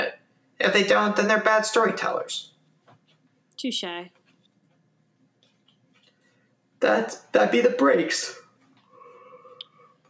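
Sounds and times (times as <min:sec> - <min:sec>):
speech: 0:00.6 - 0:02.5, 0:03.6 - 0:04.2, 0:06.8 - 0:08.4
person yawning: 0:08.9 - 0:10.0.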